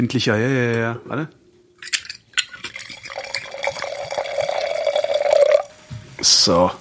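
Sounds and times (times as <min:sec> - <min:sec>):
speech: 0:00.0 - 0:02.0, 0:06.2 - 0:06.7
glass clinking: 0:01.8 - 0:05.7
wine being poured into a glass: 0:01.9 - 0:05.7.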